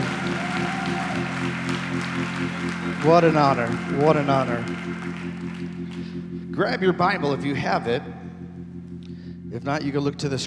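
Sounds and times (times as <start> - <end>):
church congregation clapping hands in praise: 0.0 - 7.4
sustained musical tone: 0.0 - 10.4
speech: 3.0 - 4.9, 6.6 - 8.2, 9.5 - 10.4.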